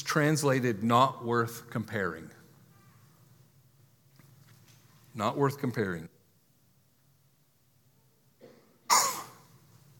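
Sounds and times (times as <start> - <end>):
speech: 0.1 - 2.4, 5.2 - 6.2
cough: 8.4 - 9.5.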